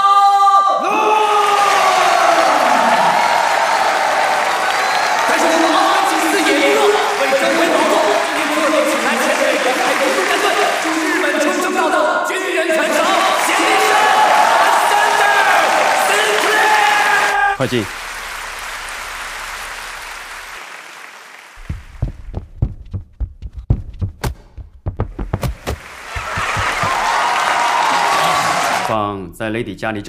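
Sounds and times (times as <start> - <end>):
whoops and shouting voices: 0.0 - 6.8, 13.0 - 17.6, 26.2 - 28.9
large crowd applauding: 1.3 - 22.2, 25.4 - 29.0
laughter: 5.4 - 11.6, 26.1 - 27.4
speech: 17.6 - 18.0, 29.6 - 30.0.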